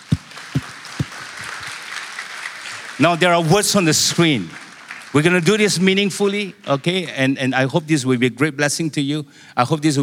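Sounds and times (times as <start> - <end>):
audience applause during a church service: 0.0 - 6.4
speech: 3.0 - 10.0.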